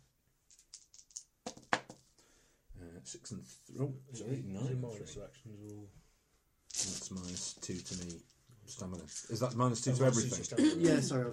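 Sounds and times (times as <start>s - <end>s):
dice being rolled: 0.5s - 2.1s, 6.7s - 10.2s
speech: 3.0s - 6.0s, 6.8s - 11.3s
laughter: 10.2s - 11.3s.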